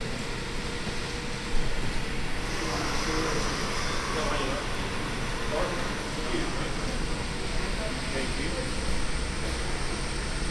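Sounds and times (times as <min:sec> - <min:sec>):
air purification machine outside an emergency room: 0:00.0 - 0:10.5.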